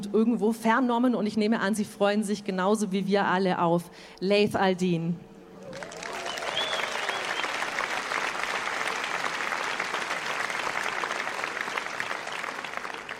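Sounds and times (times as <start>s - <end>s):
speech: 0.1s - 5.3s
audience applause: 5.7s - 13.1s.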